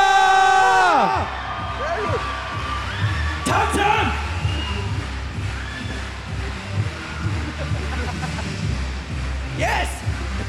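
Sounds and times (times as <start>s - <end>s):
audience cheering: 0.0s - 8.1s
laughter: 7.1s - 9.0s, 10.0s - 10.4s.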